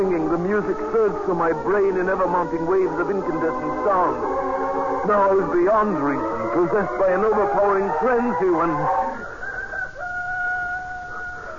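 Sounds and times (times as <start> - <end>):
speech: 0.0 - 9.0
rooster crowing: 3.0 - 11.5.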